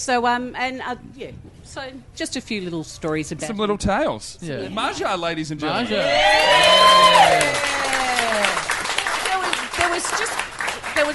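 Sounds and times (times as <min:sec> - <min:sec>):
speech: 0:00.0 - 0:08.7, 0:10.0 - 0:11.1
audience applause: 0:06.0 - 0:11.1.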